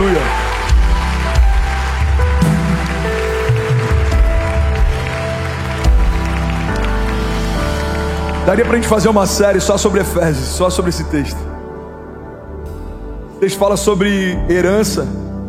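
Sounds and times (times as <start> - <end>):
audience applauding: 0.0 - 10.4
low bass: 0.0 - 15.4
speech: 8.5 - 11.5, 13.4 - 15.3.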